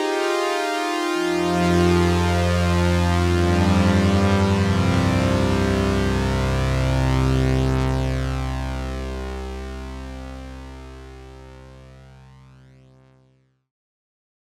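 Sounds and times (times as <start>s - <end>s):
Oberheim OBX synthesizer bank sounds: 0.1s - 9.8s.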